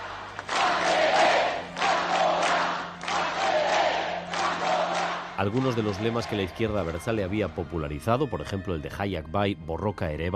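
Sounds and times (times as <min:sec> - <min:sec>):
angry crowd shouting at a protest: 0:00.0 - 0:06.6
speech: 0:05.4 - 0:10.3.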